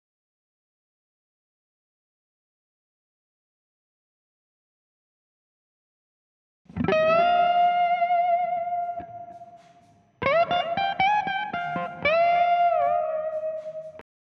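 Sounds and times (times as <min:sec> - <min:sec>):
guitar: 0:06.7 - 0:14.1.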